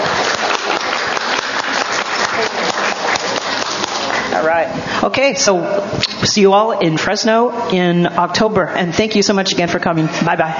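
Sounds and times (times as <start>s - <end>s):
audience applause: 0.0s - 4.5s
speech: 4.4s - 10.5s.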